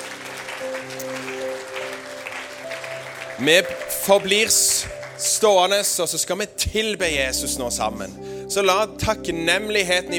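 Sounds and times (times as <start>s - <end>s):
audience applause for a panel: 0.0s - 6.2s
soft sustained keyboard chords: 0.0s - 10.1s
speech: 0.8s - 1.3s, 3.4s - 10.1s.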